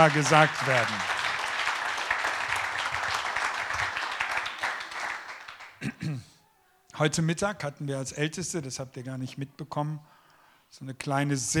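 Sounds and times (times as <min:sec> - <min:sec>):
speech: 0:00.0 - 0:01.1, 0:07.0 - 0:11.5
audience applause: 0:00.0 - 0:05.8.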